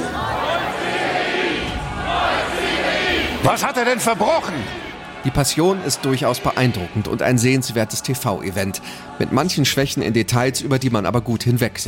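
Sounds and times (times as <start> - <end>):
live studio audience shouting as the crowd in a televised Passion play: 0.0 - 7.6
speech: 3.4 - 11.8.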